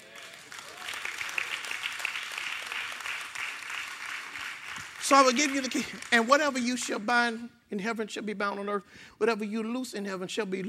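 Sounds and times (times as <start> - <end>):
audience clapping: 0.0 - 7.4
speech: 5.1 - 10.6.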